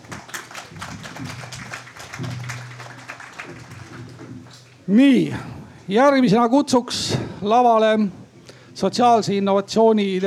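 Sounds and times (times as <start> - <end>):
crowd applause: 0.0 - 4.5
speech: 4.9 - 8.2, 8.8 - 10.2.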